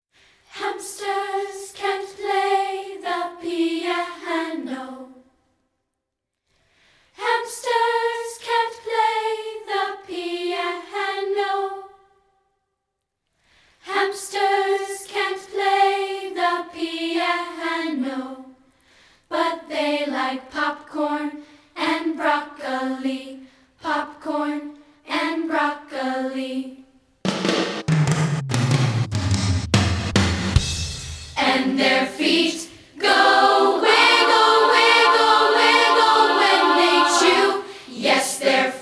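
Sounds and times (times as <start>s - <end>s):
a cappella singing: 0.4s - 5.4s, 7.2s - 12.2s, 13.8s - 18.7s, 19.3s - 27.0s, 31.4s - 38.7s
drum fill: 27.2s - 32.1s.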